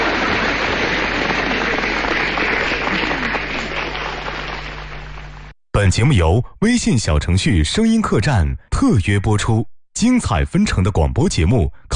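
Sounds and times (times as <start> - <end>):
crowd applauding: 0.0 - 5.6
speech: 5.8 - 11.9.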